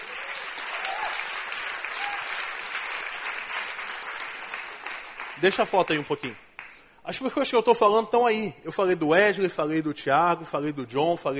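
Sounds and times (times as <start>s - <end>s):
audience applause: 0.0s - 6.4s
speech: 5.4s - 6.4s, 7.1s - 11.3s.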